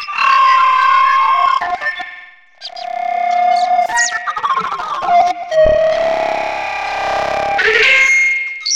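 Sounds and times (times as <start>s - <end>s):
flute: 0.1s - 8.5s.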